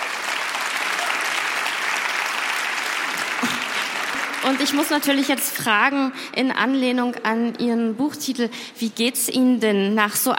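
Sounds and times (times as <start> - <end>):
applause: 0.0 - 5.6
speech: 4.4 - 10.3.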